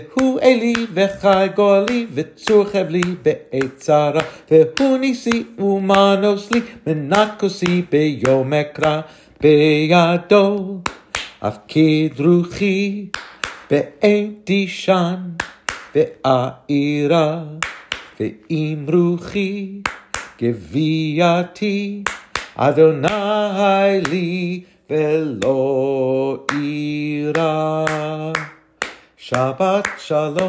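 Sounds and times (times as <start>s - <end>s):
Jewish hymn: 0.0s - 30.4s
clapping: 0.2s - 9.0s, 10.8s - 11.4s, 13.1s - 13.8s, 15.4s - 16.0s, 17.6s - 18.2s, 19.8s - 20.4s, 22.0s - 23.2s, 27.4s - 30.4s.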